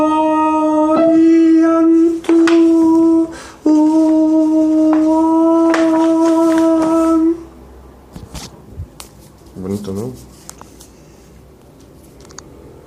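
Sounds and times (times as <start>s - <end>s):
soprano singing: 0.0s - 7.5s.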